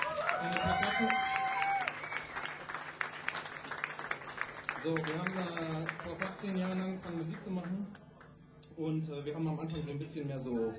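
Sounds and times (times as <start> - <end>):
audience applause: 0.0 - 7.7
speech: 0.4 - 1.3, 4.8 - 8.0, 8.8 - 10.7.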